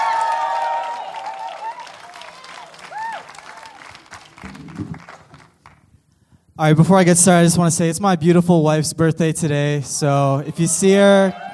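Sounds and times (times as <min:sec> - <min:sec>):
whoops: 0:00.0 - 0:04.0, 0:11.0 - 0:11.5
audience applause for a speaker at a speaking event: 0:00.0 - 0:05.8
speech: 0:06.6 - 0:11.5.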